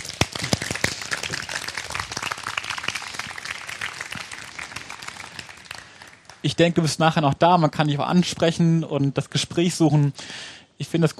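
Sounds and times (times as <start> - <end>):
audience applause: 0.0 - 6.5
speech: 6.4 - 11.1.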